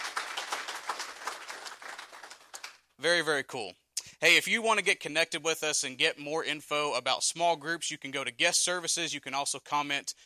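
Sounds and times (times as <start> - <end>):
audience round of applause: 0.0 - 2.8
speech: 3.0 - 10.2.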